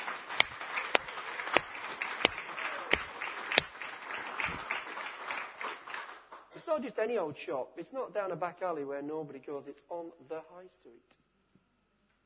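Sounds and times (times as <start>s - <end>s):
audience clapping: 0.0s - 6.7s
speech: 6.8s - 11.2s.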